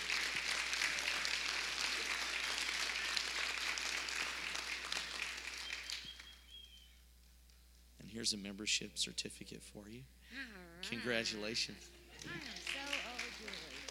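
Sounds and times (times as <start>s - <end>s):
audience applause: 0.0s - 6.4s, 12.2s - 13.8s
speech: 8.2s - 13.8s.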